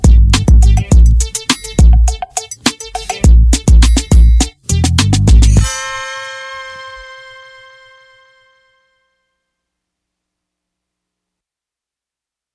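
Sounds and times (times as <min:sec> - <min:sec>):
instrumental music: 0:00.0 - 0:09.2.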